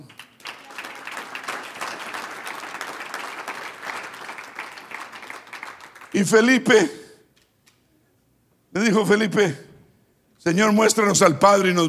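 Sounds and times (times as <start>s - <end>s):
crowd clapping: 0.0s - 6.7s
speech: 6.2s - 7.0s, 8.9s - 9.7s, 10.4s - 11.8s.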